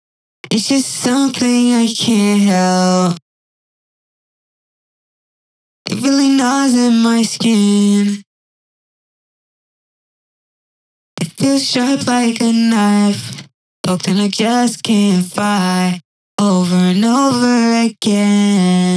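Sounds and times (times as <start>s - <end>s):
person singing: 0.4s - 3.2s, 5.9s - 8.2s, 11.2s - 18.9s.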